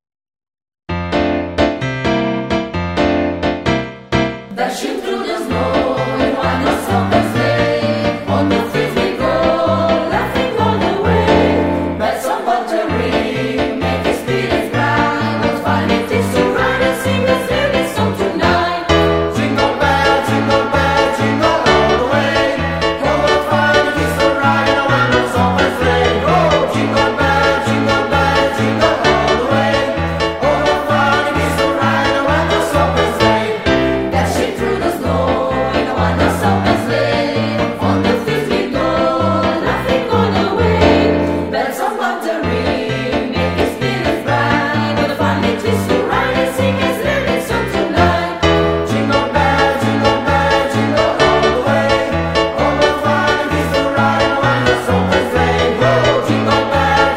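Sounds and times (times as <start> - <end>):
Christmas song: 0.9 - 57.1.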